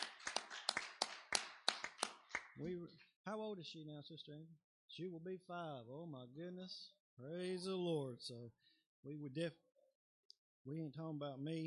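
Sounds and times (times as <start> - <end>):
audience hand clapping: 0.0 - 2.7
speech: 2.6 - 9.6, 10.6 - 11.6.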